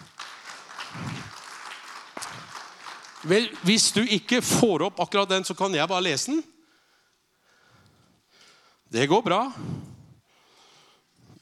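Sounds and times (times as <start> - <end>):
audience applause: 0.0 - 4.4
speech: 3.2 - 6.5, 8.9 - 9.9.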